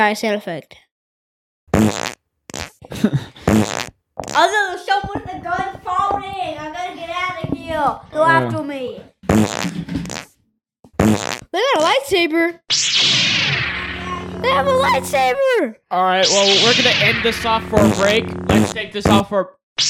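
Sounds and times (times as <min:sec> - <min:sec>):
speech: 0:00.0 - 0:00.8, 0:02.9 - 0:03.7, 0:04.3 - 0:09.8, 0:11.6 - 0:13.2, 0:14.4 - 0:19.8
fart sound effect: 0:01.7 - 0:04.4, 0:09.2 - 0:11.5, 0:12.7 - 0:15.3, 0:16.2 - 0:19.8.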